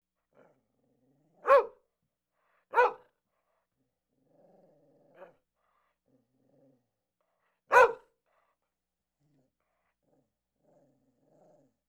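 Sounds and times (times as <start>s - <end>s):
dog barking: 1.4s - 1.8s, 2.7s - 3.1s, 7.7s - 8.1s.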